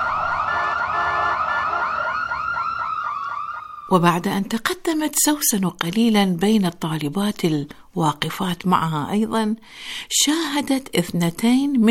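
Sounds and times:
ambulance siren: 0.0s - 4.1s
speech: 3.9s - 11.8s.

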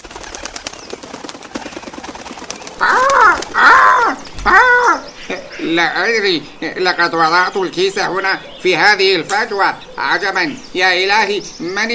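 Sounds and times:
crow cawing: 2.8s - 5.8s
speech: 5.7s - 11.9s.

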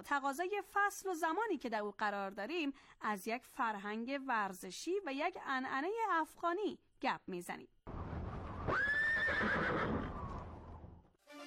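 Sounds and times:
speech: 0.0s - 7.8s
horse whinnying: 8.7s - 10.6s.

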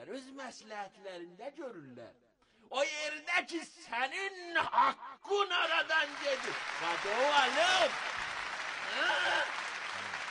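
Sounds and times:
speech: 0.1s - 8.2s, 8.9s - 9.6s
audience applause: 5.8s - 10.2s.

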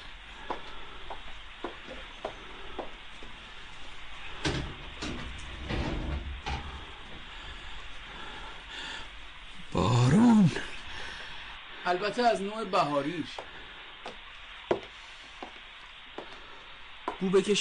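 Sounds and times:
steady hiss: 0.0s - 17.5s
window being opened with clicks, rattles and scraping: 4.4s - 6.8s
speech: 9.7s - 10.7s, 11.9s - 13.5s, 17.2s - 17.5s.

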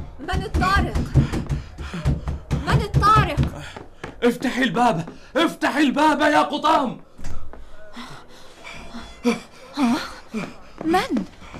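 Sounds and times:
speech: 0.2s - 1.6s, 4.2s - 7.0s, 9.2s - 11.3s
person panting out of breath: 1.0s - 2.6s, 7.5s - 11.5s.

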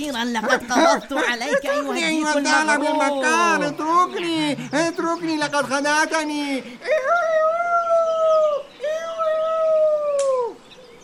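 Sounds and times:
speech: 0.0s - 7.4s
laughter: 0.3s - 9.3s
fox howling: 0.4s - 4.7s, 6.8s - 10.6s.

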